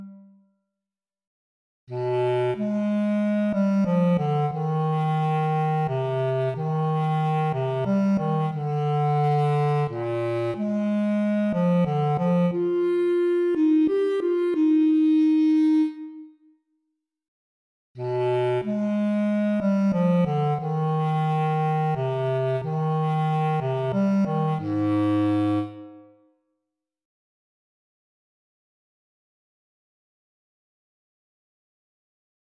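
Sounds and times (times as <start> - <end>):
bass clarinet playing for an audition: 0.0 - 0.3, 1.9 - 16.3, 18.0 - 26.2.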